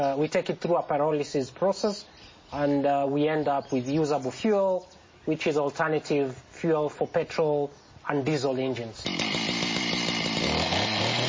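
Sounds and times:
speech: 0.0 - 9.3
chainsaw running: 9.0 - 11.2.

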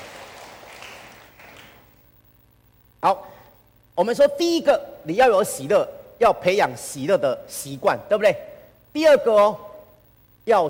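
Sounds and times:
audience clapping hands: 0.0 - 2.0
speech: 3.0 - 3.3, 4.0 - 9.7, 10.4 - 10.6.

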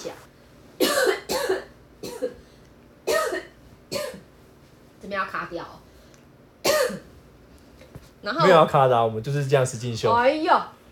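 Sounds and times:
speech: 0.0 - 1.1, 5.3 - 5.8, 8.2 - 10.8
person coughing: 0.8 - 2.4, 3.1 - 4.2, 6.6 - 7.1.

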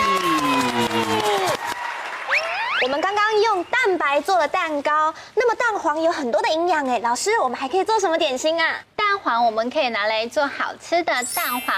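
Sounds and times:
applause: 0.0 - 3.6
speech: 2.8 - 11.7.

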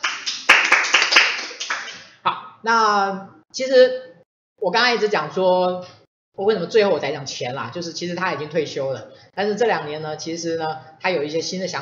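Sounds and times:
audience applause: 0.0 - 2.0
speech: 2.6 - 11.8.

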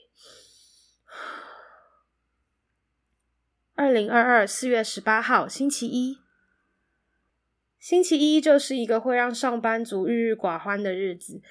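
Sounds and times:
deep breathing to calm down: 0.1 - 2.1
speech: 3.8 - 6.2, 7.8 - 11.4.

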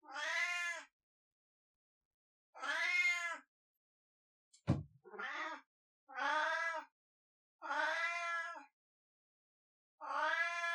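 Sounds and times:
pet cat long drawn-out meowing howls: 2.6 - 3.4, 5.1 - 6.9, 7.6 - 8.6, 10.0 - 10.7
sharp knock: 4.7 - 4.9.

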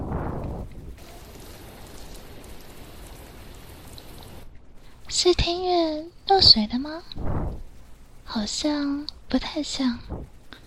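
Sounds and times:
rain falling outside: 0.4 - 5.3
speech: 5.1 - 7.6, 8.3 - 10.4.

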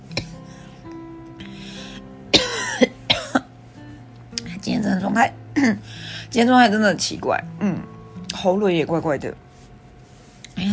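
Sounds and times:
low hum: 0.0 - 10.7
person coughing: 2.3 - 3.5
speech: 5.1 - 9.4, 10.6 - 10.7.

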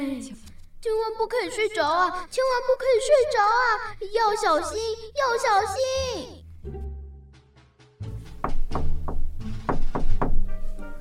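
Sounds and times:
speech: 0.2 - 6.8
knocking on a door: 8.2 - 10.5.

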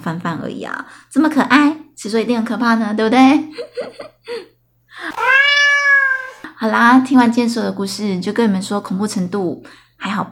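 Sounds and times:
speech: 0.0 - 5.6, 6.6 - 10.3
cat meowing: 5.1 - 6.5.

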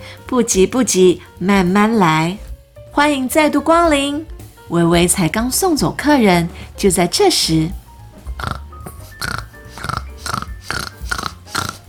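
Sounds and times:
speech: 0.3 - 7.8, 8.4 - 8.6
mother pig and ten piglets grunting and oinking: 8.3 - 11.8.

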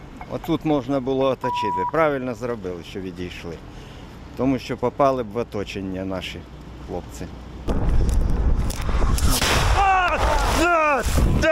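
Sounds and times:
speech: 0.3 - 7.8, 10.6 - 11.4
artillery shell exploding: 7.7 - 11.4.

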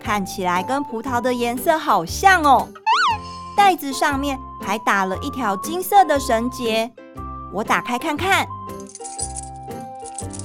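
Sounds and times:
speech: 0.1 - 8.6
bunch of keys jangling: 8.8 - 10.4.

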